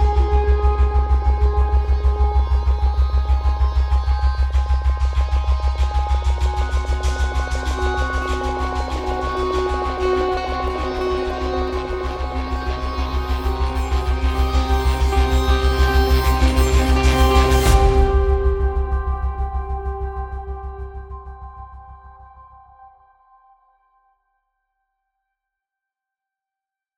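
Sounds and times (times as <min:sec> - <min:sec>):
pulse bass with tremolo: 0:00.0 - 0:22.5.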